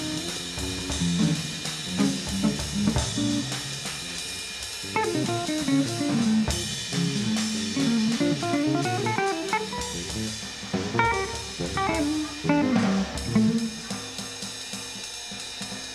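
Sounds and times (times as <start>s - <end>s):
blues improvisation: 0.0s - 14.6s.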